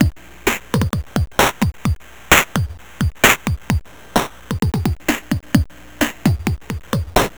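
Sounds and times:
beat loop: 0:00.8 - 0:02.0, 0:02.6 - 0:03.8, 0:04.5 - 0:05.7, 0:06.3 - 0:07.3.

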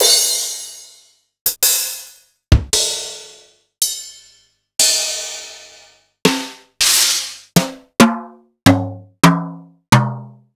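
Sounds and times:
Akai MPC500 brush drum kit: 0:01.5 - 0:03.2, 0:03.8 - 0:08.9.

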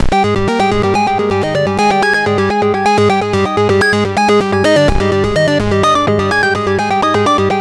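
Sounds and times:
lead melody: 0:00.1 - 0:07.5.

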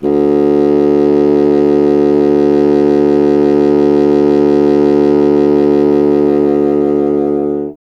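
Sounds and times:
wind contrabassoon: 0:00.0 - 0:07.8.

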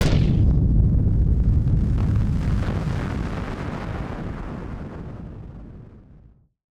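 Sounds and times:
firework sound effect: 0:00.0 - 0:06.4.

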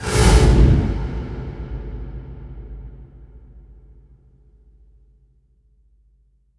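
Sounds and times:
cinematic flame impact: 0:00.0 - 0:04.2.

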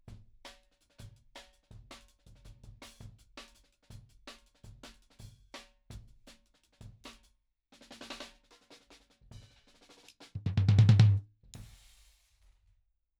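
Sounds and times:
floor tom in jungle beats: 0:10.4 - 0:11.8.

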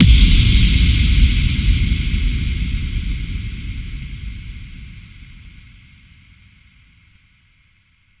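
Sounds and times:
effect kick drum hits: 0:00.0 - 0:05.7.

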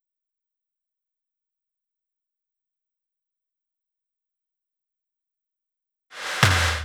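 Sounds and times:
snare effect: 0:06.1 - 0:06.8
140 BPM drum loop: 0:06.2 - 0:06.8.

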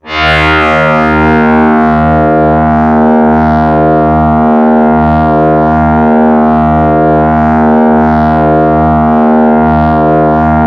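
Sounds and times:
Yamaha YX81Z double bass D sharp 2: 0:00.0 - 0:10.6.

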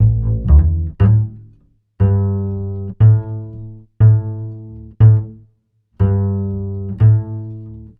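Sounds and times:
upright bass in Ukrainian Gypsy style: 0:00.0 - 0:07.9.

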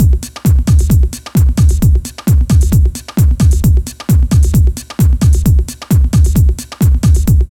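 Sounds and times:
industrial techno music: 0:00.0 - 0:07.5.

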